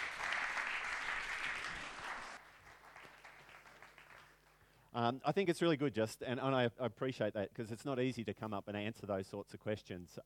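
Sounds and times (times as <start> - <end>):
crowd applause: 0.0 - 4.6
speech: 5.0 - 10.2.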